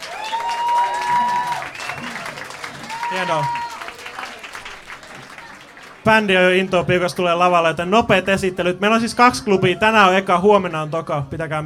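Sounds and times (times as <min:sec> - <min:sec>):
audience applause at a summer jazz festival club night: 0:00.0 - 0:06.8
crowd noise: 0:00.0 - 0:11.6
speech: 0:03.1 - 0:03.6, 0:06.0 - 0:11.6.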